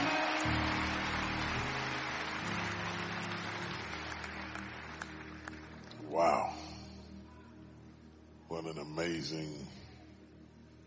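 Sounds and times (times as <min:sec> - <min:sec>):
crowd applauding: 0:00.0 - 0:06.6
speech: 0:06.2 - 0:06.6, 0:08.5 - 0:09.9.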